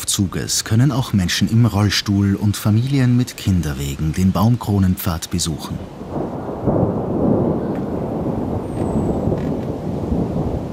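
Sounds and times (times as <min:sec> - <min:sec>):
speech: 0:00.2 - 0:06.4
thunder from approaching thunderstorm: 0:06.0 - 0:10.7.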